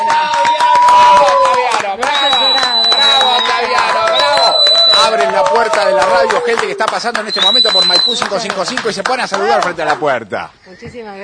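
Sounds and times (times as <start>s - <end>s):
people cheering: 0.0s - 10.1s
crowd applauding: 0.0s - 10.2s
high whistles: 2.0s - 5.2s, 7.2s - 8.3s
speech: 6.4s - 11.2s.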